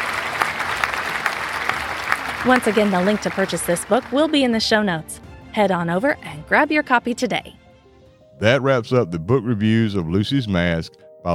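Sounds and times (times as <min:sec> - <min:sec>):
crowd applause: 0:00.0 - 0:05.2
speech: 0:02.4 - 0:07.6, 0:08.4 - 0:11.3.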